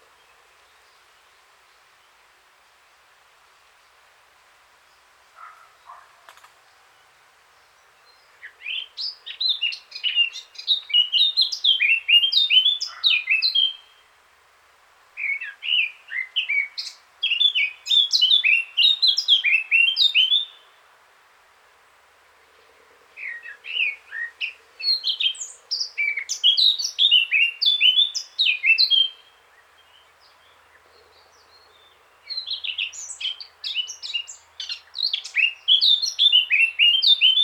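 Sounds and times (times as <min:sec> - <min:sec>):
Eurasian blackcap singing: 0:08.1 - 0:13.9, 0:15.2 - 0:20.6, 0:23.2 - 0:30.4, 0:31.5 - 0:37.4.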